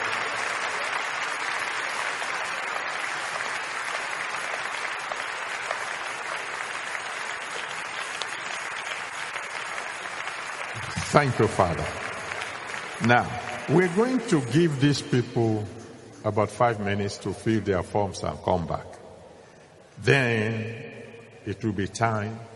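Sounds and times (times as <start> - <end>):
audience clapping: 0.0 - 16.2
speech: 11.1 - 12.0, 13.0 - 18.9, 20.0 - 20.8, 21.4 - 22.5.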